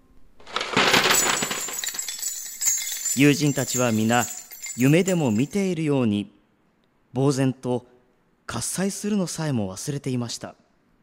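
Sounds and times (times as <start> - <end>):
metallic coins clattering and jingling onto a hard floor: 0.4 - 5.5
speech: 3.2 - 6.4, 7.1 - 7.9, 8.5 - 10.6.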